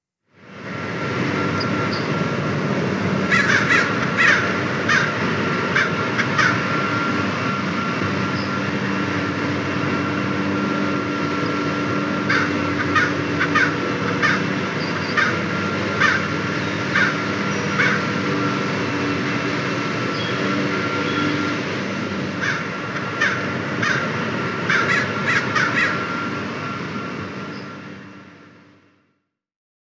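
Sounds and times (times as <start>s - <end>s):
leaf blowers: 0.4s - 28.9s
crows cawing: 3.2s - 7.6s, 10.9s - 18.8s, 20.2s - 26.8s.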